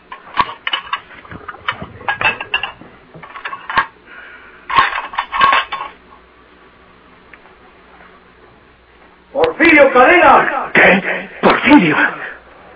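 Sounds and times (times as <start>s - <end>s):
clay dishes being put in sink: 0.1s - 3.9s, 4.7s - 6.0s
speech: 9.7s - 12.2s.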